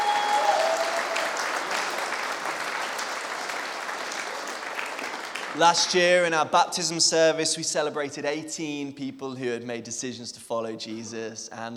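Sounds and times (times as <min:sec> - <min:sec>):
audience round of applause: 0:00.0 - 0:05.9
speech: 0:05.6 - 0:11.7.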